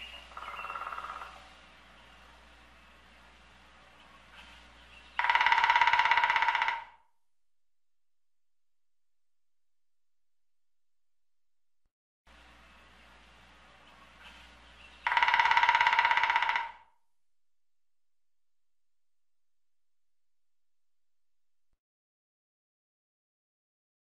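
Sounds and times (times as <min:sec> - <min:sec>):
woodpecker drumming: 0:00.0 - 0:01.4, 0:04.0 - 0:07.1, 0:13.9 - 0:17.0.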